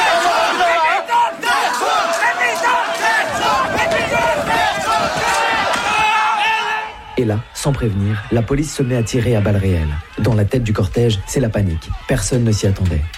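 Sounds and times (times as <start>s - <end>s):
protest crowd shouting demands: 0.0s - 10.2s
speech: 7.2s - 13.1s.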